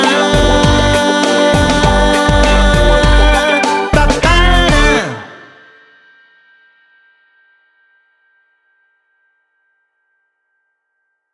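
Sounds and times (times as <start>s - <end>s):
instrumental music without lyrics: 0.0s - 6.0s.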